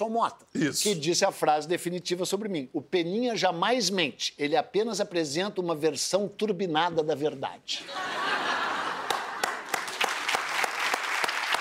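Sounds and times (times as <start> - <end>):
speech: 0.0 - 8.4
laughter: 7.8 - 9.7
hands clapping in applause: 9.0 - 11.5.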